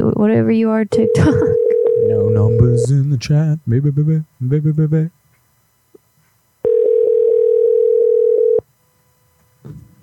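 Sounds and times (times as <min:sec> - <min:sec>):
speech: 0:00.2 - 0:01.5, 0:02.1 - 0:05.2, 0:09.7 - 0:10.0
telephone ringback tone on an outgoing call: 0:00.9 - 0:02.9, 0:06.6 - 0:08.6.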